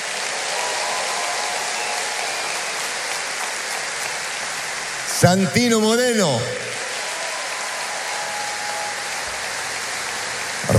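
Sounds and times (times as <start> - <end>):
audience applause: 0.0 - 10.7
speech: 5.2 - 6.6.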